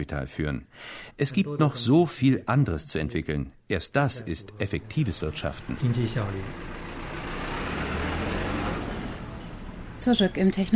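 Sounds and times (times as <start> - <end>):
speech: 0.0 - 6.8, 10.0 - 10.7
shuttle bus engine and road noise in a technology park: 4.4 - 10.7.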